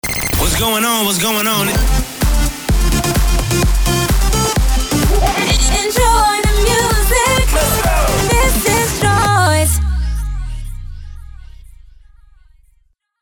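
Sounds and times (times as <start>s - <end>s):
remix jingle: 0.0s - 10.1s.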